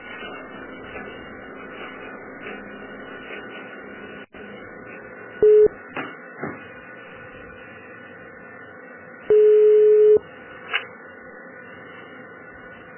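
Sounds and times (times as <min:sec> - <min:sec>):
telephone keypad tones dialing a phone menu option: 0:05.4 - 0:05.8, 0:09.3 - 0:10.2.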